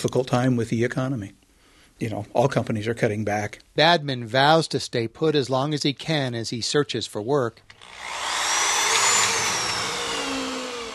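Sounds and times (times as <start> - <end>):
speech: 0.0 - 1.4, 2.0 - 8.3
drill driving screws into new deck planks: 7.7 - 10.9.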